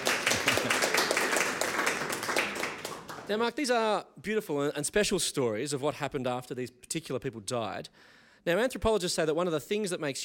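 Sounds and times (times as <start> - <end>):
applause: 0.0 - 3.5
speech: 3.3 - 10.2.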